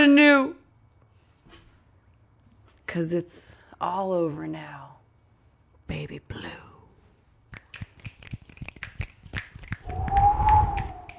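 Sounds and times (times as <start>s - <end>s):
speech: 2.9s - 5.0s, 5.9s - 6.7s
sharp irregular snaps or claps: 7.5s - 11.1s
rushing howling wind with a thin whistling tone: 9.8s - 11.1s.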